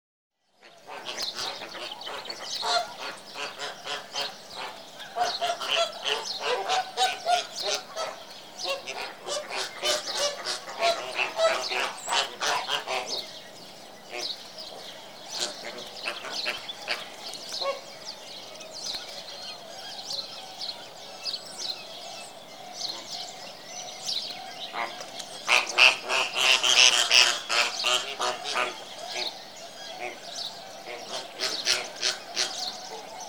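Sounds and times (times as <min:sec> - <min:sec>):
flamingo flock honking and chatter: 0:00.6 - 0:33.2.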